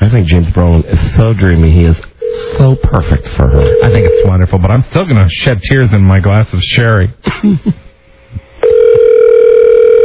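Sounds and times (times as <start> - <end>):
speech: 0.1 - 7.8
faint telephone tone: 2.2 - 4.3, 8.6 - 10.0.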